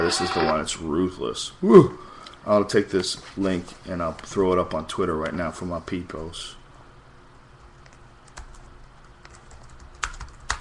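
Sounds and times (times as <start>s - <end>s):
speech: 0.0s - 6.6s
faint steady hiss: 0.0s - 9.3s
typing on a computer keyboard: 7.8s - 10.5s.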